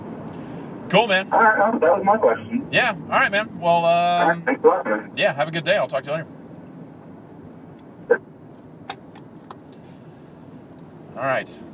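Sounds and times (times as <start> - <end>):
car driving in traffic: 0.0 - 11.7
speech: 0.9 - 6.4, 11.2 - 11.7.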